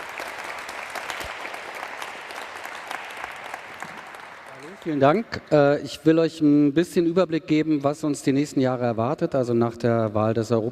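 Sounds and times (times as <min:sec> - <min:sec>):
audience applauding for a speaker: 0:00.0 - 0:05.8
speech: 0:04.8 - 0:10.7.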